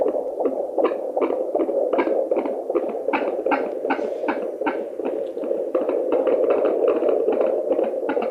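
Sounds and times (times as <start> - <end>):
fetal heartbeat: 0.0 - 8.2.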